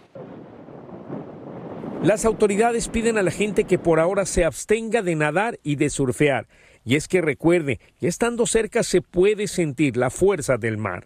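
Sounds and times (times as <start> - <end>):
strong gusting coastal wind buffeting the microphone: 0.0 - 4.5
speech: 2.0 - 11.0.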